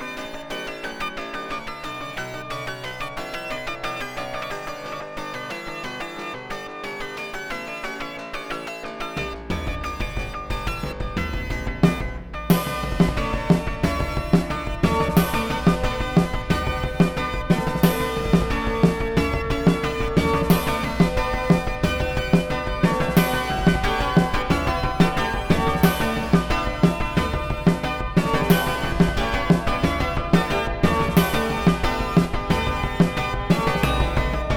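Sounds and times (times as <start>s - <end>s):
dark forest combat music loop: 9.3s - 34.5s.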